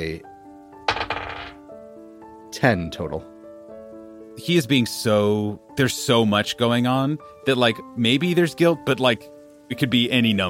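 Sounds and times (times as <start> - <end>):
speech: 0.0 - 0.3, 2.6 - 3.3, 4.4 - 10.4
d20 die being rolled in Dungeons & Dragons: 0.9 - 1.6.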